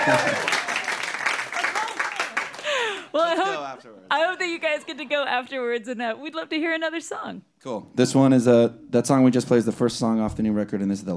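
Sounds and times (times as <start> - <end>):
speech: 0.0 - 0.6, 3.1 - 11.1
audience applause for a band at a live music show: 0.0 - 3.1.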